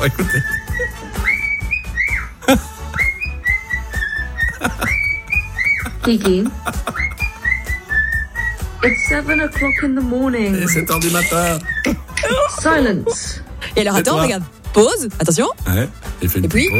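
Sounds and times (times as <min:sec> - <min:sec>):
speech: 0:00.0 - 0:00.8, 0:02.5 - 0:02.7, 0:06.0 - 0:07.0, 0:08.8 - 0:16.7
pet bird whistling a tune: 0:00.1 - 0:06.0, 0:06.8 - 0:12.2, 0:16.6 - 0:16.7
laughter: 0:02.4 - 0:02.9, 0:04.3 - 0:07.4, 0:11.8 - 0:14.2.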